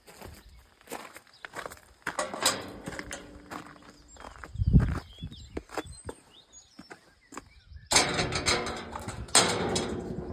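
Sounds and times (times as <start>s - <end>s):
cemetery exit gate: 2.2s - 4.0s, 7.9s - 10.3s.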